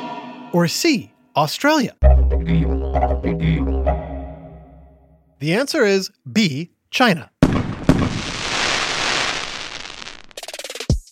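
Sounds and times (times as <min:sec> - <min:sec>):
speech: 0:00.5 - 0:04.0, 0:05.4 - 0:07.3
fireworks exploding: 0:07.4 - 0:10.8.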